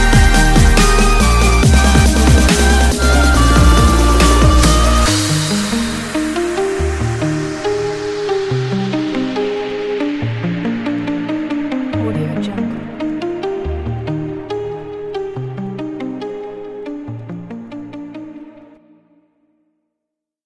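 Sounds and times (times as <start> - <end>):
melodic pop dance music: 0.0 - 15.6.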